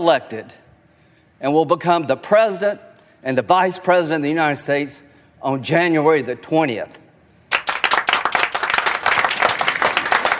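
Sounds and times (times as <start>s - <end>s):
speech: 0.0s - 0.6s, 1.4s - 7.0s
group of people clapping: 7.5s - 10.3s.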